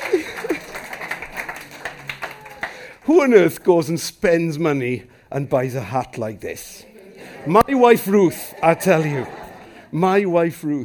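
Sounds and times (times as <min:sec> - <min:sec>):
laughter: 0:00.0 - 0:02.7, 0:06.7 - 0:10.6
audience applause: 0:00.0 - 0:03.3
speech: 0:03.1 - 0:10.8.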